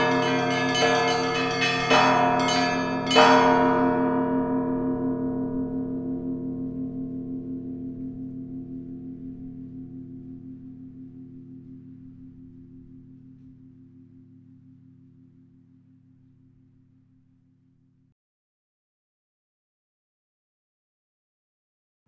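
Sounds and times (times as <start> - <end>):
traditional church bells ringing: 0.0 - 16.6.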